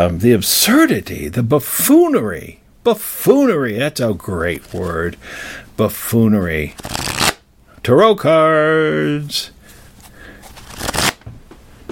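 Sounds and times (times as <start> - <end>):
speech: 0.0 - 7.0, 7.8 - 9.6
78-card tarot deck being shuffled: 4.5 - 5.0, 6.7 - 7.4, 9.7 - 11.3.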